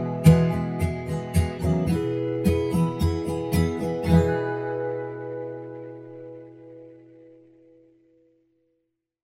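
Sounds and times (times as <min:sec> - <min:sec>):
E major chords: 0:00.0 - 0:08.3.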